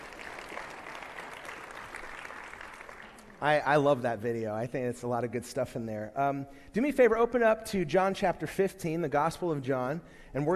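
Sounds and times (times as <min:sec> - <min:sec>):
audience applause: 0:00.0 - 0:03.4
speech: 0:03.4 - 0:10.5.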